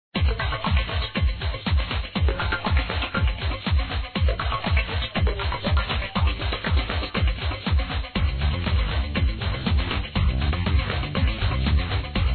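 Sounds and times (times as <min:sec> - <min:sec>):
music: 0:00.2 - 0:12.3.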